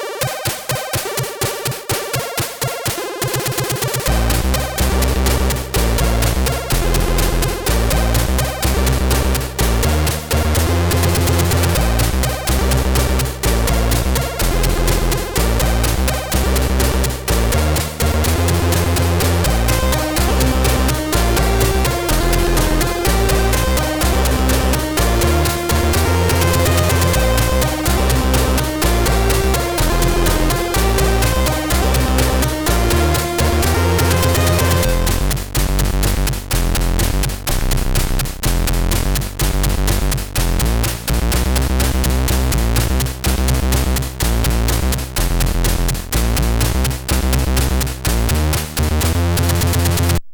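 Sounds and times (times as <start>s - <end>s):
funky groove music: 0.2s - 50.2s.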